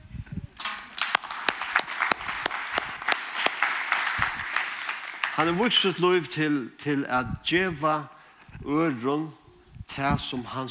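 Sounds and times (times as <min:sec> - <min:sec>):
audience applause: 0:00.9 - 0:06.0
speech: 0:05.4 - 0:10.6.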